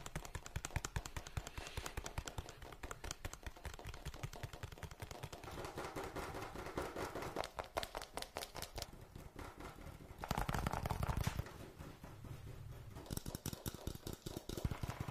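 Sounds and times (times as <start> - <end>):
fast tapping: 0.0 - 15.0.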